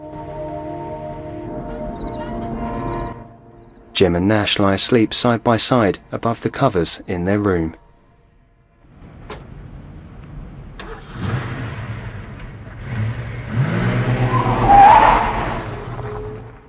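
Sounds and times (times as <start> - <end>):
speech: 4.0 - 7.8
car engine pulling away outside at night: 8.9 - 16.6.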